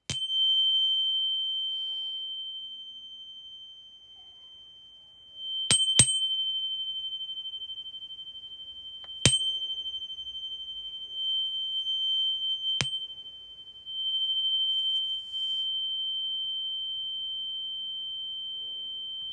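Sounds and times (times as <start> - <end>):
chime: 0.0 - 19.3.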